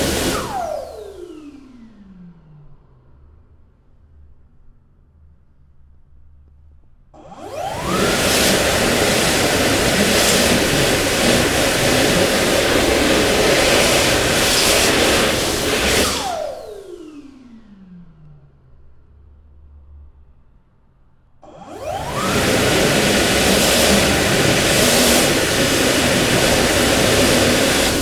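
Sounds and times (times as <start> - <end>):
electric hand dryer: 0.0 - 1.7, 7.2 - 17.7, 21.4 - 28.0.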